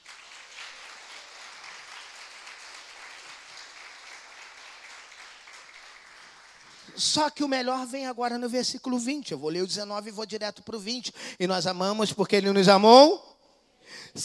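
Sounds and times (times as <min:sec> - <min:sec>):
audience applause: 0:00.0 - 0:07.0
speech: 0:06.9 - 0:13.3, 0:13.9 - 0:14.2.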